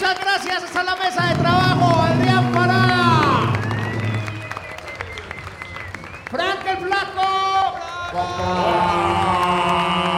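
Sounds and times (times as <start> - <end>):
audience applause: 0.0 - 10.1
sustained tonal sound and low hum: 1.3 - 5.1.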